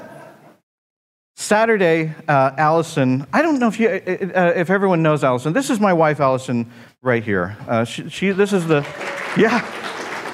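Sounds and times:
speech: 1.5 - 9.8
audience applause: 8.3 - 10.3.

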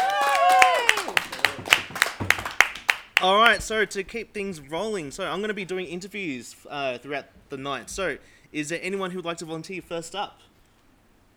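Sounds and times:
voice cheering: 0.0 - 2.0
audience clapping: 0.0 - 3.6
speech: 3.2 - 10.5.

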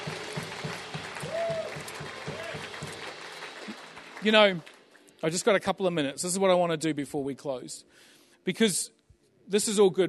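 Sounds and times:
audience applause: 0.0 - 5.0
speech: 4.2 - 10.0.

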